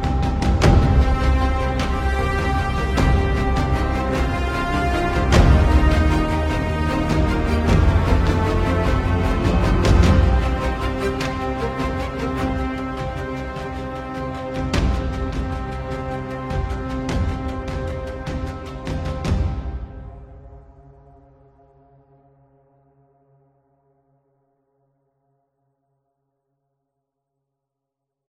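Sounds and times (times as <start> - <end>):
waltz music: 0.0 - 18.7.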